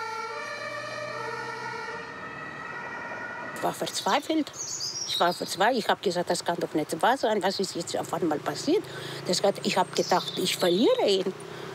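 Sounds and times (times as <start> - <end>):
ambulance siren: 0.0 - 4.4
low vehicle rumble: 0.0 - 11.7
speech: 3.6 - 11.5.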